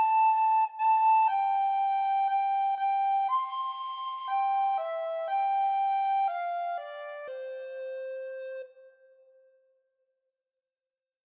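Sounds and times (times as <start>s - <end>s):
solo soprano recorder playing a Christmas carol: 0.0s - 8.8s.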